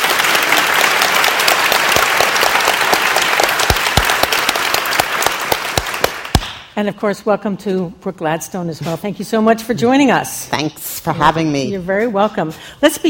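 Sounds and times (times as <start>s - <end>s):
live audience applause: 0.0s - 6.4s
speech: 6.8s - 13.0s.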